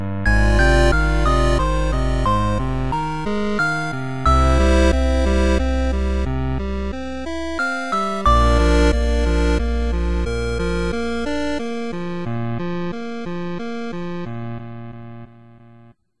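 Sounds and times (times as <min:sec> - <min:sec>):
music: 0:00.0 - 0:16.0.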